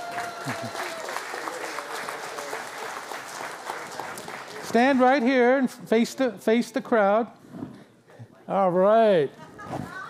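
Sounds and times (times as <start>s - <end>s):
cheers: 0.0s - 3.1s
audience applause: 0.0s - 5.5s
speech: 0.4s - 0.9s, 4.7s - 7.4s, 8.5s - 9.4s.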